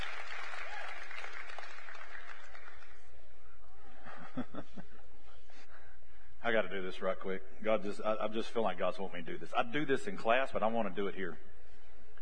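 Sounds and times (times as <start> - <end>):
audience applause for the kids: 0.0 - 3.2
speech: 6.4 - 11.5.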